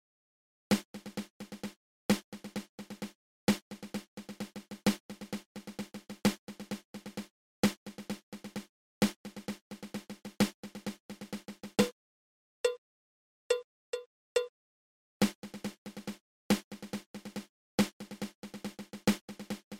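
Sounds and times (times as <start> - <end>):
double ratamacue snare drum rudiment: 0.7 - 11.9, 15.2 - 19.7.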